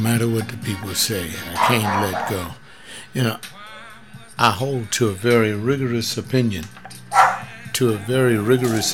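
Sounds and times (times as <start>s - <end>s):
speech: 0.1s - 3.6s, 4.4s - 6.8s, 7.8s - 8.9s
dog barking, yelping and whining: 1.4s - 2.5s, 6.9s - 7.6s, 8.4s - 8.9s.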